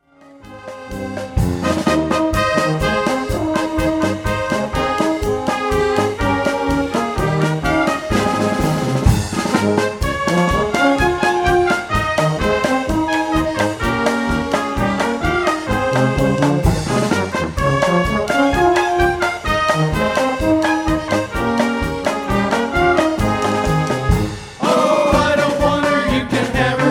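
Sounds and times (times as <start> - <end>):
polka music: 0.0 - 26.8.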